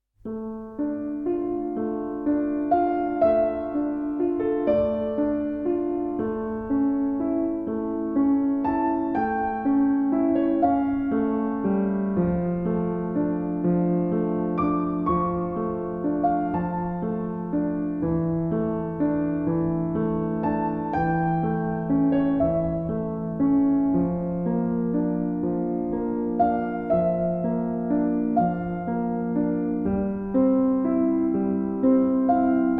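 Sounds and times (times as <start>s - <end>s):
sad piano music: 0.2s - 32.7s.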